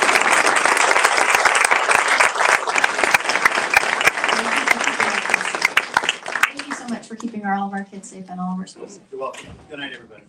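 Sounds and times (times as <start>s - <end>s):
audience round of applause: 0.0s - 7.2s
speech: 7.5s - 10.2s.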